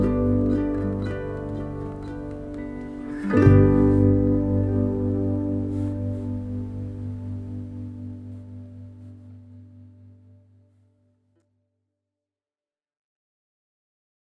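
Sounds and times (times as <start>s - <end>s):
intimate indie score music: 0.0s - 10.8s.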